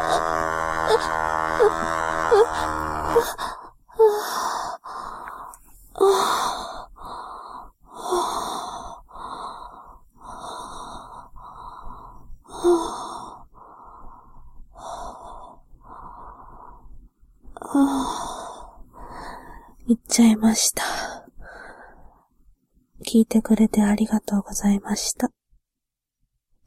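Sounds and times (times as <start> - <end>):
vibrator buzzing: 0.0 - 3.5
background noise: 0.0 - 26.6.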